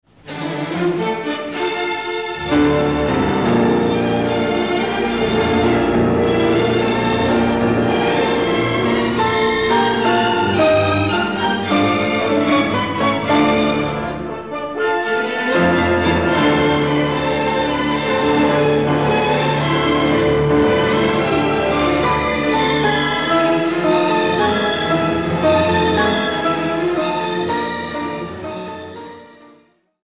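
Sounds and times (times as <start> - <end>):
piano concerto movement: 0.1 - 29.8.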